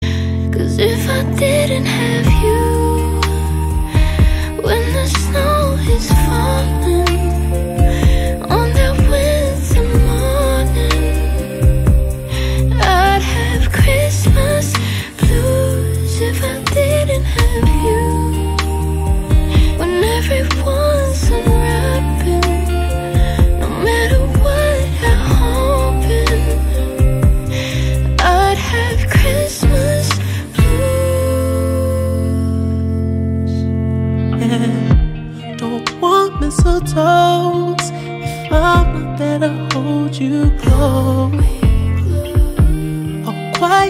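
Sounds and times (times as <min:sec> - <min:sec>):
Christmas blues music: 0:00.0 - 0:43.8.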